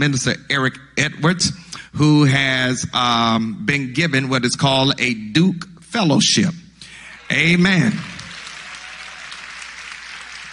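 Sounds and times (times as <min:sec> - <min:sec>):
speech: 0:00.0 - 0:06.6, 0:07.3 - 0:08.1
audience applause: 0:07.2 - 0:10.5.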